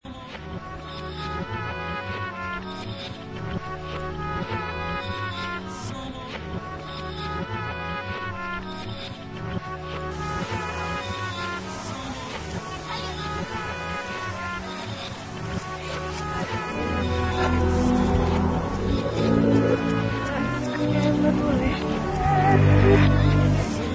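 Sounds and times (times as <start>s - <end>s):
experimental ambient music: 0.1s - 23.9s.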